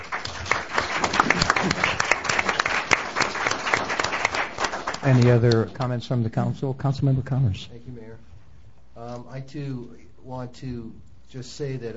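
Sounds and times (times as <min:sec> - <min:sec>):
audience applause: 0:00.0 - 0:05.6
speech: 0:05.0 - 0:08.3, 0:09.0 - 0:11.9.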